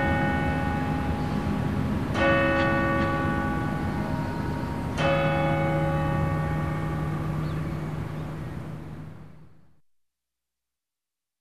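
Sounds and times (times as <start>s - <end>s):
chime strike on tower clock: 0.0s - 8.1s.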